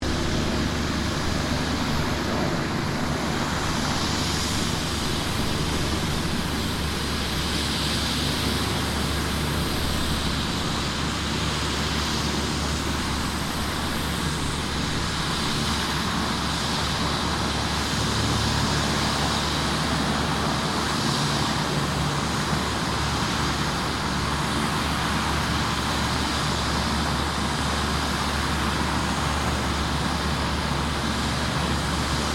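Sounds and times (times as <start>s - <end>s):
Sikorsky S-76 rescue helicopter idling: 0.0s - 32.3s.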